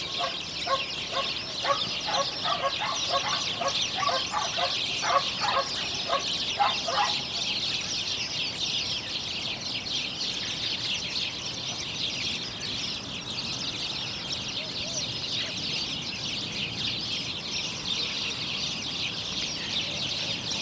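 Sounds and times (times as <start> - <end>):
flock of house sparrows Passer domesticus chirping: 0.0 - 20.6.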